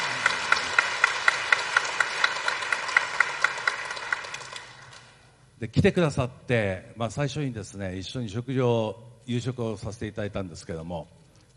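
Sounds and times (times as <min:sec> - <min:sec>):
audience applause: 0:00.0 - 0:05.1
speech: 0:05.6 - 0:11.2.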